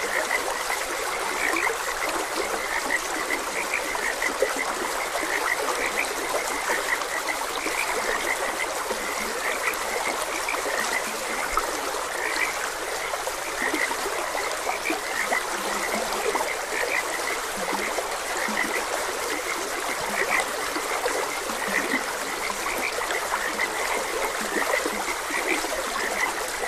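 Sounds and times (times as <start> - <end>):
frogs croaking: 0.0 - 26.6
stream flowing: 0.0 - 26.6.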